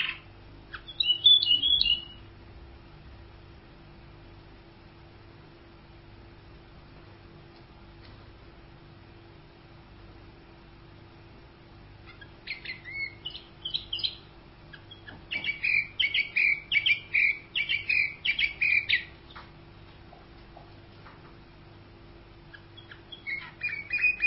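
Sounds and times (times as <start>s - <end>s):
canary song with high whistles, buzzy rattles and trills: 0.0s - 2.4s, 11.7s - 20.6s, 22.0s - 24.2s.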